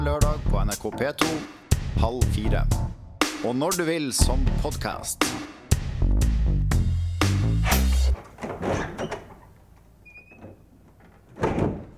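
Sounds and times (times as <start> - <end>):
speech: 0.1 - 6.3
door opening with a loud low rumbling thud: 7.6 - 11.9.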